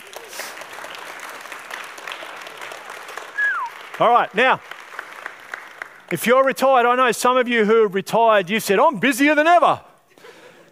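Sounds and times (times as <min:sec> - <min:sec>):
audience applauding: 0:00.0 - 0:06.6
speech: 0:04.0 - 0:04.7, 0:06.1 - 0:09.9.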